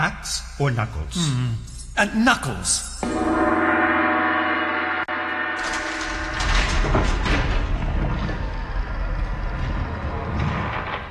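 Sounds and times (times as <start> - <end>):
speech: 0.0 - 3.8
gong ringing: 3.0 - 7.4
noisy rumbling clatter: 5.6 - 11.0.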